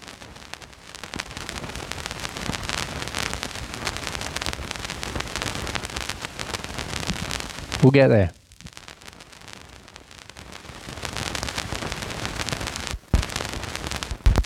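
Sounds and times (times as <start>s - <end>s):
vinyl record crackle: 0.0s - 14.4s
speech: 7.8s - 8.4s.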